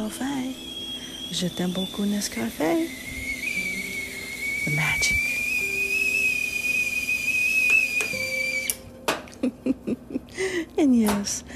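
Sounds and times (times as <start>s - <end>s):
speech: 0.0s - 3.2s, 4.6s - 5.3s, 10.8s - 11.5s
teapot whistling: 0.0s - 9.0s
laughter: 9.3s - 10.4s.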